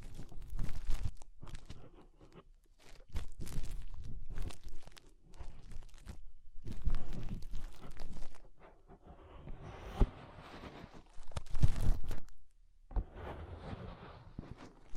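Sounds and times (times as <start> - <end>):
fingers rubbing and scratching at the inner ear: 0.0 - 12.4, 13.0 - 14.9.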